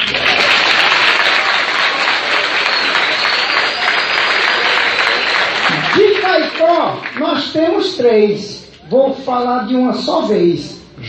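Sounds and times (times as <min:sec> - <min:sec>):
sustained audience applause: 0:00.0 - 0:07.8
speech: 0:07.6 - 0:11.0.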